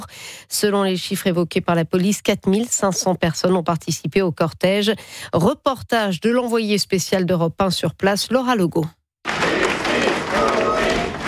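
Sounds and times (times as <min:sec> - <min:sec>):
speech: 0:00.0 - 0:09.0
street march crowd applause: 0:09.3 - 0:11.2.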